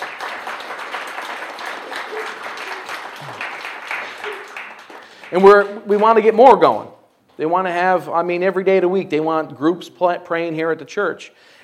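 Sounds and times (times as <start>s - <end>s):
audience applause: 0.0s - 6.3s
speech: 5.3s - 11.6s.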